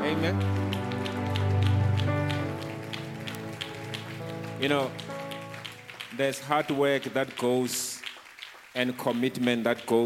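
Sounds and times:
crowd clapping: 0.0s - 10.0s
speech: 0.2s - 0.7s, 4.6s - 5.1s, 6.2s - 7.9s, 8.8s - 10.0s.

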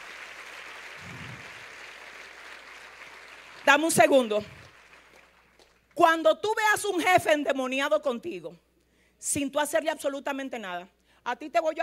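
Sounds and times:
crowd applauding: 0.0s - 6.0s
speech: 3.6s - 4.6s, 6.0s - 8.6s, 9.2s - 11.8s.

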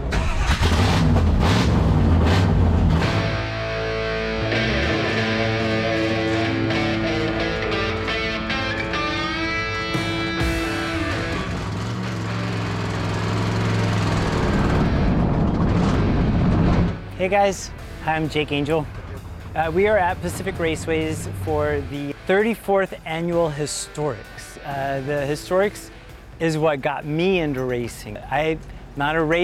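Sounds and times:
historic race car engine starting at the Historics at Pacific Raceways: 0.0s - 7.1s, 7.7s - 23.3s
speech: 17.2s - 19.0s, 19.6s - 29.4s.

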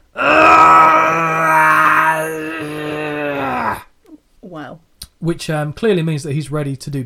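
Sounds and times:
man imitating Mr. Fuji's strained grunting: 0.2s - 3.9s
speech: 5.2s - 7.0s.

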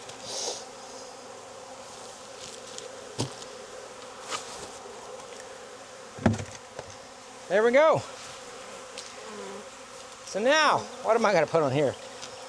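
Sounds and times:
honeybees buzzing in an open hive: 0.0s - 12.4s
knocks and clacks of wood: 6.2s - 6.9s
speech: 7.5s - 8.2s, 10.3s - 12.0s.

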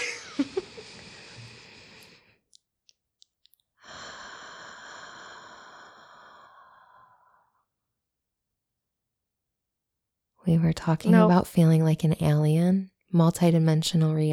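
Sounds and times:
slow breathing during a guided pause: 0.6s - 2.4s, 3.8s - 7.7s
speech: 10.5s - 14.3s.

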